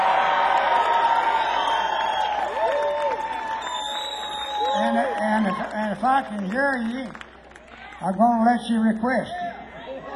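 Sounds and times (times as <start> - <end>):
cheers and whoops: 0.0 - 5.8
large audience applauding: 0.0 - 8.0
speech: 6.0 - 7.3, 8.0 - 9.5.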